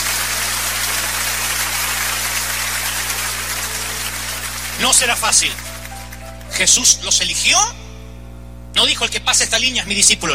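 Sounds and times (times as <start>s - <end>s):
audience applauding: 0.0s - 6.8s
speech: 4.8s - 5.7s, 6.6s - 7.8s, 8.8s - 10.3s.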